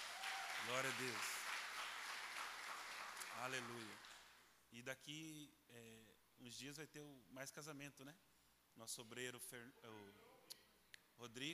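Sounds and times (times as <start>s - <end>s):
audience applause: 0.0s - 4.3s
speech: 0.6s - 1.3s, 3.4s - 4.1s, 4.7s - 10.3s, 11.2s - 11.5s.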